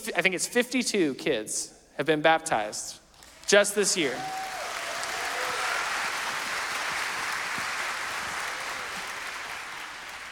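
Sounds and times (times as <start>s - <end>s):
speech: 0.1s - 4.5s
audience cheering: 3.2s - 10.3s
audience clapping: 3.2s - 10.3s.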